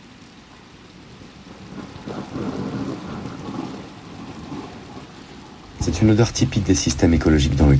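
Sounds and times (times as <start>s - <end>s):
steady rain hissing down: 0.0s - 7.7s
low rolling thunder: 1.0s - 7.7s
speech: 5.8s - 7.7s.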